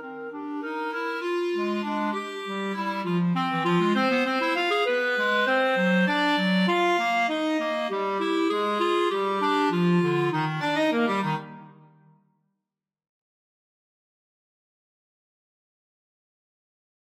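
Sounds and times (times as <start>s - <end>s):
clarinet duet playing a waltz: 0.0s - 11.8s.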